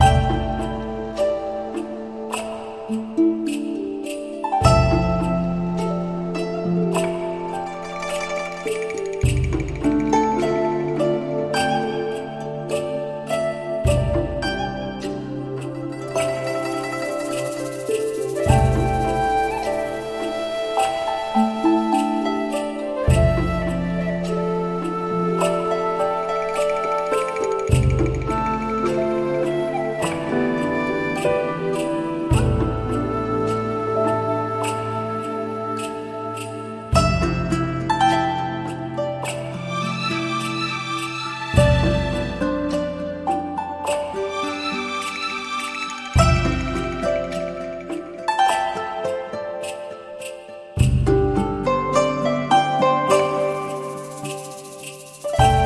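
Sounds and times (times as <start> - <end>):
background music: 0.0 - 55.6.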